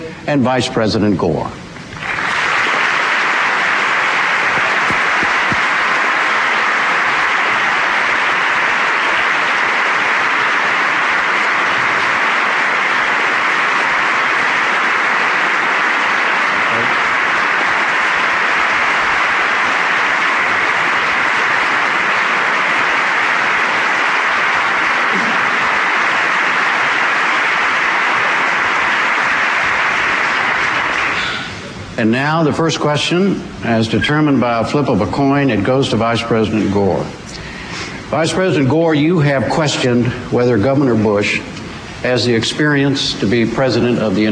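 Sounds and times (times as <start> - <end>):
speech: 0.2 - 1.7, 32.0 - 37.2, 38.1 - 44.3
audience applause welcoming Governor Bush and Vice President Gore: 1.9 - 32.0.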